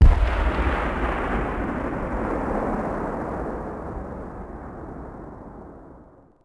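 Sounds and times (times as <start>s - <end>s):
distant gunshot: 0.0s - 3.5s.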